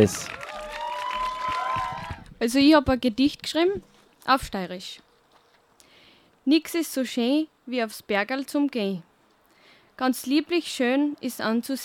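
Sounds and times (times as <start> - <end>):
speech: 0.0 - 0.4, 2.4 - 5.0, 6.4 - 9.1, 10.0 - 11.8
audience applause: 0.0 - 2.3
cheering: 0.0 - 2.3.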